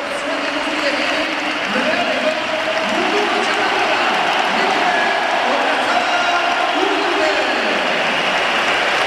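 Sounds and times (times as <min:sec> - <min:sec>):
stadium applause: 0:00.0 - 0:09.0
stadium crowd whistling: 0:00.0 - 0:09.0.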